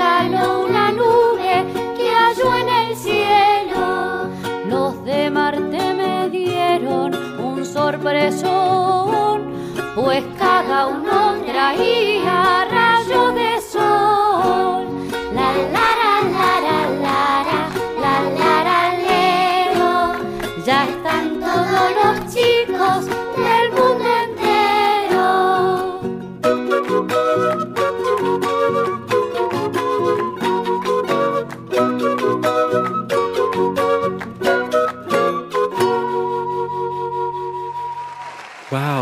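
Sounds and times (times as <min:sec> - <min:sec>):
cheerful children's song in Spanish with bouncy instrumental backing: 0:00.0 - 0:38.0.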